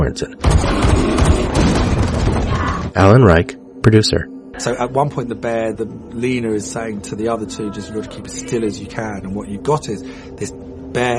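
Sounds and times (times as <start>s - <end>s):
speech: 0.0s - 1.8s, 2.9s - 11.1s
gunshots fired at a bear: 0.4s - 2.9s.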